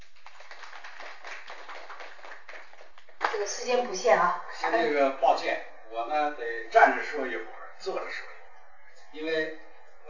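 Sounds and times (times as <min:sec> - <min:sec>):
audience applause: 0:00.0 - 0:03.3
speech: 0:03.4 - 0:08.3, 0:09.1 - 0:10.0.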